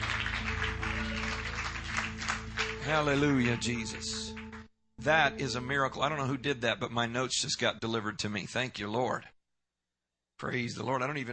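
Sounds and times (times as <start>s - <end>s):
seated audience clapping hands: 0.0s - 4.7s
speech: 2.9s - 4.3s, 5.0s - 9.4s, 10.4s - 11.3s.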